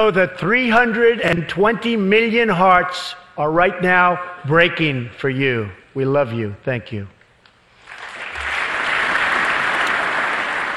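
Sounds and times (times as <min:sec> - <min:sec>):
speech: 0:00.0 - 0:07.2
crowd applause: 0:07.8 - 0:10.7.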